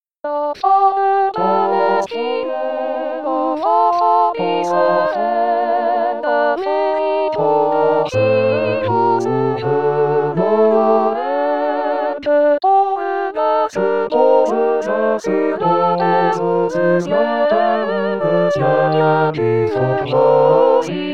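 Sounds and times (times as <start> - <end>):
SATB choir singing: 0.6 - 21.1.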